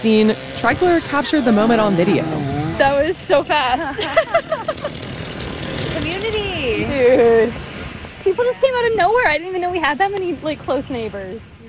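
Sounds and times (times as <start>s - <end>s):
speech: 0.0s - 5.0s, 6.0s - 7.7s, 8.3s - 11.6s
chainsaw running: 0.2s - 3.2s, 4.2s - 6.9s
laughter: 3.7s - 5.1s.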